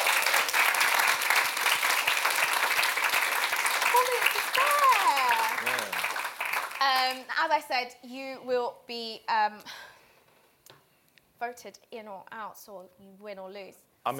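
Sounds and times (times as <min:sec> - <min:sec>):
audience applause: 0:00.0 - 0:07.2
speech: 0:06.9 - 0:09.8, 0:11.4 - 0:14.1.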